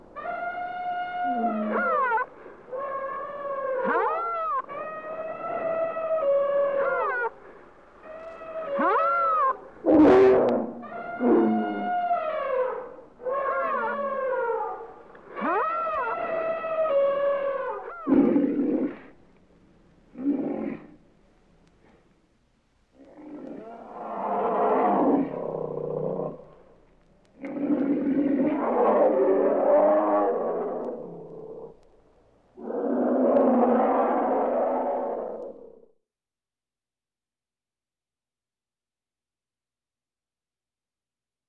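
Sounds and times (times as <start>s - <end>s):
jungle animals ambience: 0.1s - 19.2s, 20.1s - 21.0s, 22.9s - 31.9s, 32.5s - 36.0s.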